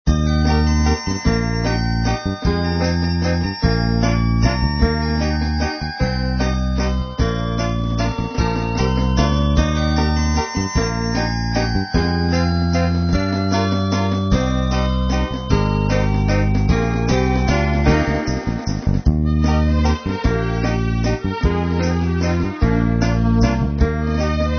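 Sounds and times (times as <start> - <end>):
christmas song: 0.0 - 24.5.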